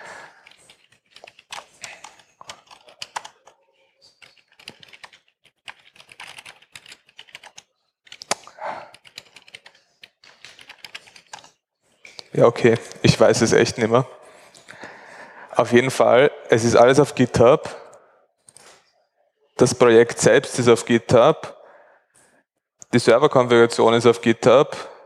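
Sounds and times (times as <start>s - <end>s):
password being typed on a computer keyboard: 0.3s - 11.6s
speech: 12.4s - 14.2s, 15.6s - 17.8s, 19.6s - 21.6s, 23.0s - 24.9s.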